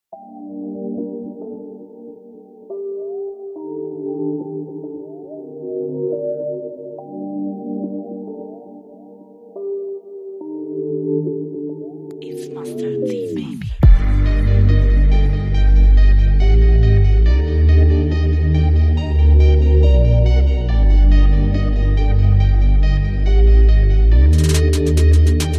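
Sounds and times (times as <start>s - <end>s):
music beat: 12.3s - 25.5s.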